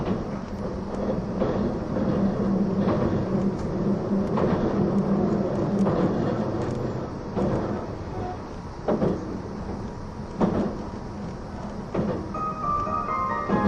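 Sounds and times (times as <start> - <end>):
wheels knocking over rail joints: 0.0 - 8.0, 8.8 - 13.6
E261 series Saphir Odoriko train running rumble: 0.0 - 13.6
brief high tone: 12.4 - 13.6.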